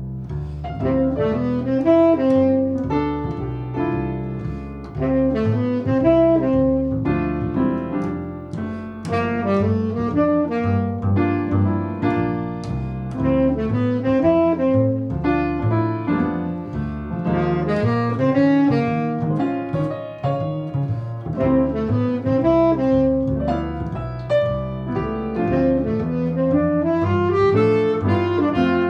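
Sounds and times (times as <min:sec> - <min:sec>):
saxophone: 0:00.3 - 0:28.8.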